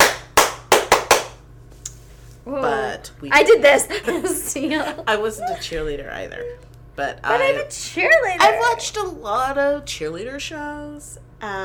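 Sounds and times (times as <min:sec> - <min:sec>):
hands clapping: 0:00.0 - 0:01.4
speech: 0:02.5 - 0:11.6
laughter: 0:03.8 - 0:05.8.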